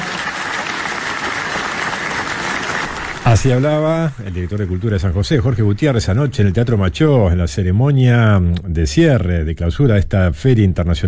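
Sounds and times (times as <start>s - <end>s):
theatre audience applauding at an international reading and book fair closing ceremony in San José: 0.0s - 5.9s
speech: 3.3s - 11.0s.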